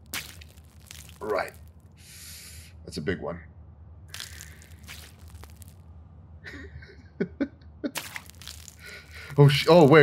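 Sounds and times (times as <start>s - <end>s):
crinkling plastic bag: 0.0s - 1.8s, 4.1s - 5.8s, 8.0s - 10.0s
retching heaves: 0.0s - 1.9s, 4.1s - 5.8s, 8.0s - 10.0s
speech: 1.2s - 1.6s, 2.8s - 3.5s, 9.4s - 10.0s.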